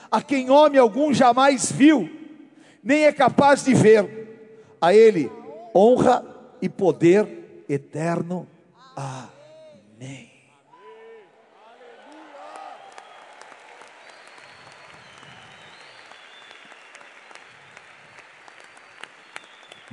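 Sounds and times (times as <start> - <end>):
speech: 0.1 - 2.2, 2.8 - 4.2, 4.8 - 9.3, 10.0 - 10.3
audience applauding: 11.6 - 19.9.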